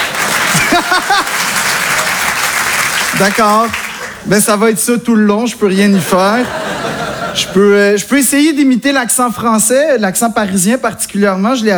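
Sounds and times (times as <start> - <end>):
audience applause: 0.0 - 4.3
laughter: 0.0 - 4.3, 5.9 - 7.9
speech: 3.2 - 6.6, 7.4 - 11.7.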